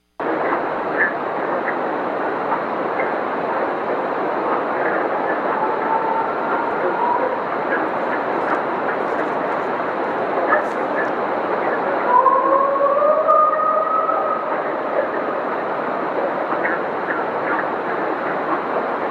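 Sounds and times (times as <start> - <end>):
loud hiss: 0.0 - 19.1
purported Bigfoot howl: 3.9 - 17.4.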